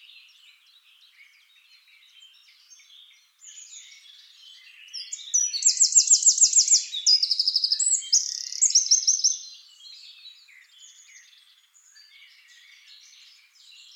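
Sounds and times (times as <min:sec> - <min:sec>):
Eurasian wren song: 0:00.0 - 0:13.9.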